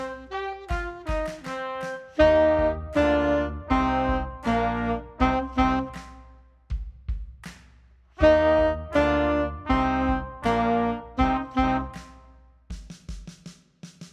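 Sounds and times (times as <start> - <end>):
loud power rock tenor saxophone: 0.0 - 6.1, 8.2 - 12.0.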